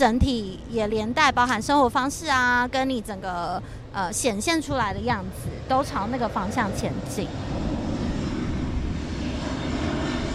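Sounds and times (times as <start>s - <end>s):
speech: 0.0s - 7.6s
China Airlines airplane flying overhead: 0.0s - 10.3s.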